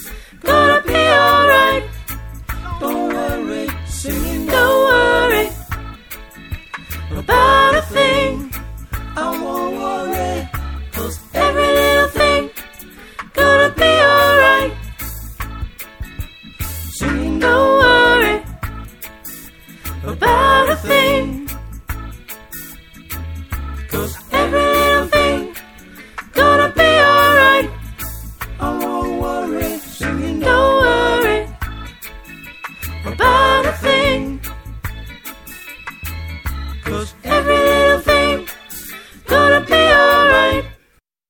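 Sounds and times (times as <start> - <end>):
soprano singing: 0.4 - 1.9, 2.6 - 5.8, 7.1 - 12.6, 13.3 - 14.8, 17.0 - 18.6, 20.0 - 21.5, 23.9 - 25.6, 26.3 - 27.8, 28.6 - 31.9, 33.0 - 34.5, 36.8 - 38.6, 39.2 - 40.8.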